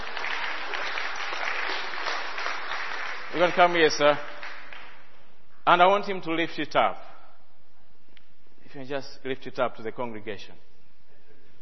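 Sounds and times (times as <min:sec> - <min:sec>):
audience clapping: 0:00.0 - 0:05.3
speech: 0:03.3 - 0:04.3, 0:05.6 - 0:07.0, 0:08.7 - 0:10.7.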